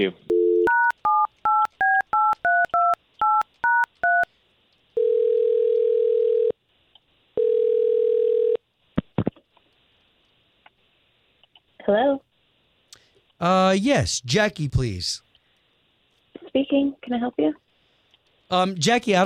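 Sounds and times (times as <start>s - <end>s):
speech: 0.0s - 0.3s, 13.4s - 15.3s, 16.7s - 17.6s, 18.5s - 19.2s
telephone ringing tones: 0.3s - 4.2s, 5.0s - 6.6s, 7.4s - 8.6s.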